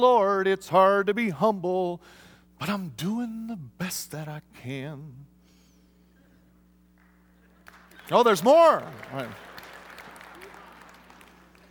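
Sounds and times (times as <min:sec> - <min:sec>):
speech: 0:00.0 - 0:05.3, 0:08.1 - 0:09.5
audience applause: 0:07.6 - 0:11.7.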